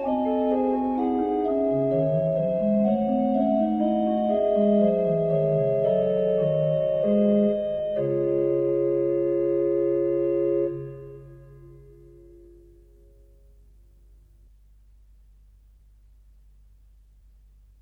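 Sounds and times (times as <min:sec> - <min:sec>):
organ playing a mass: 0:00.0 - 0:12.5.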